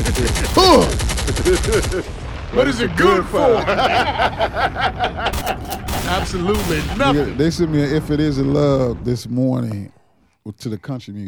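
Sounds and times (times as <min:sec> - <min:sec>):
automatic gunfire sound effect: 0:00.0 - 0:02.1, 0:05.3 - 0:07.4
laughter: 0:00.0 - 0:02.2, 0:03.3 - 0:06.4
speech: 0:00.2 - 0:11.2
person shouting: 0:00.4 - 0:01.0.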